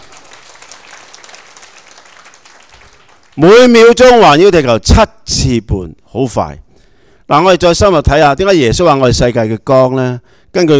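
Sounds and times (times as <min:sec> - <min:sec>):
audience applauding a correct quiz answer: 0:00.0 - 0:03.5
speech: 0:03.4 - 0:06.6, 0:07.3 - 0:10.7.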